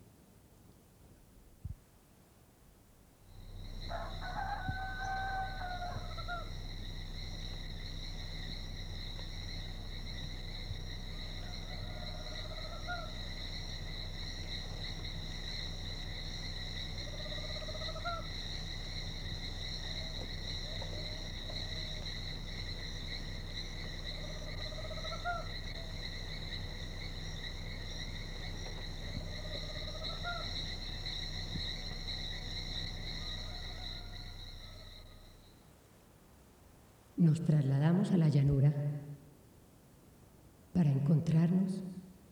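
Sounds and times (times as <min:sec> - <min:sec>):
low hum: 0:03.0 - 0:42.3
crickets and insects buzzing: 0:03.2 - 0:39.2
rooster crowing in Colombia: 0:03.4 - 0:35.4
screech owl calling in Colombia: 0:03.4 - 0:35.5
speech: 0:37.2 - 0:38.8.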